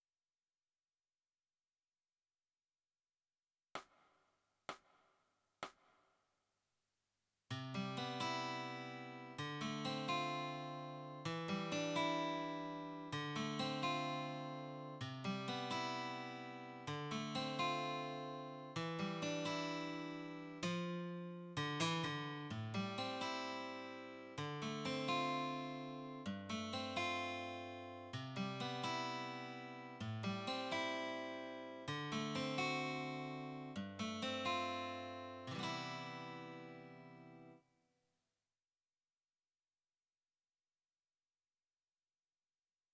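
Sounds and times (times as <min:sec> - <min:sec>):
guitar: 0:07.5 - 0:37.6.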